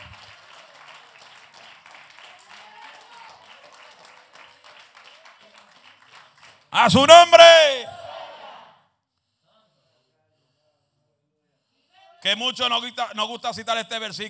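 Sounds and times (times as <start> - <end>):
audience applause: 0.0 - 7.2
speech: 6.7 - 7.7, 12.3 - 14.2.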